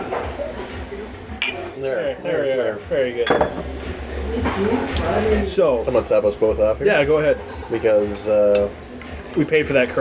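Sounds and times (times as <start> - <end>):
water glasses clinking in a toast: 1.4 - 1.7, 3.2 - 3.8
speech: 1.8 - 9.9.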